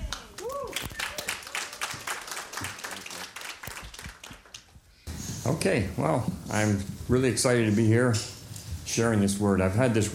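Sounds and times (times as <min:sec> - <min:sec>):
church congregation applauding during a morning service: 0:00.0 - 0:04.7
speech: 0:05.5 - 0:08.3, 0:08.9 - 0:10.1.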